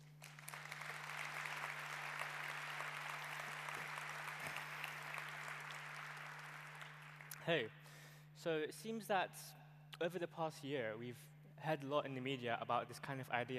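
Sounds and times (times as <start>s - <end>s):
crowd clapping: 0.0s - 7.5s
low steady hum: 0.0s - 13.5s
speech: 7.4s - 13.5s.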